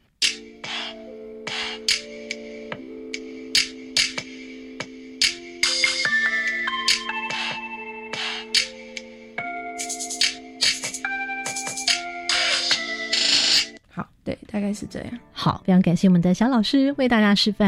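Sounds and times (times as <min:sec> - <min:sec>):
synthesized phone ringtone melody composed on a tablet: 0:00.2 - 0:13.8
speech: 0:14.6 - 0:17.6.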